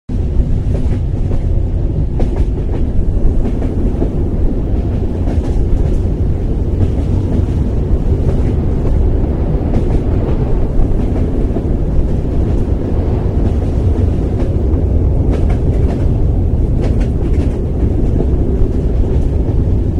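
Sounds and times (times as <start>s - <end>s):
train: 0.1s - 19.9s.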